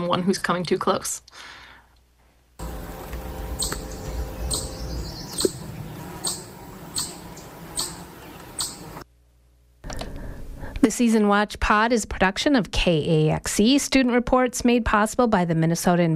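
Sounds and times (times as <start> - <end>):
speech: 0.1 - 1.6, 10.9 - 16.1
chipmunk alarm call: 2.8 - 9.0.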